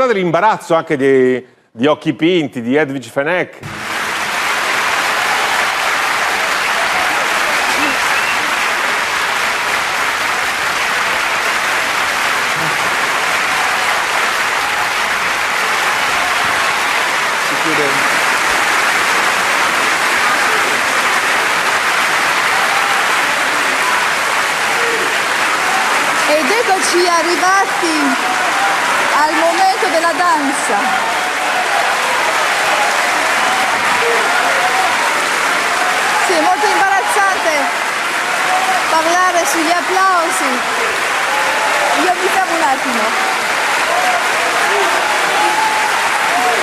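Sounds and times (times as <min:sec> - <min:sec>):
speech: 0:00.0 - 0:03.8
audience applause at a festival: 0:03.6 - 0:46.6.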